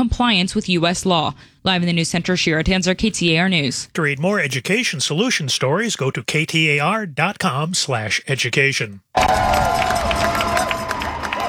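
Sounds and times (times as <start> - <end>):
speech: 0.0 - 9.9
crowd cheering as the USS Lincoln docks in San Diego: 9.1 - 11.4
people shouting: 9.2 - 11.4.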